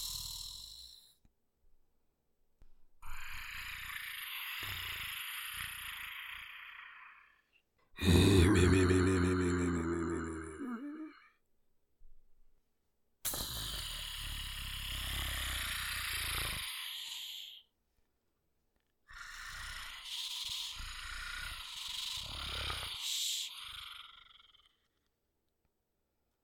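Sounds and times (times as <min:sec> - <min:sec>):
reptile monster sounds: 0:03.0 - 0:11.3, 0:13.3 - 0:17.7, 0:19.1 - 0:25.0.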